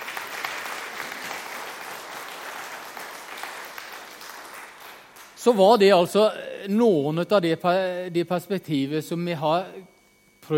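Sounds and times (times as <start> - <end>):
audience applause: 0.0 - 5.3
speech: 5.4 - 10.5.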